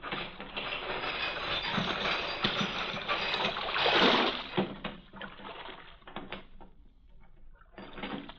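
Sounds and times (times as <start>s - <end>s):
heavy harbor chain rattling being lowered over water: 0.0s - 4.8s.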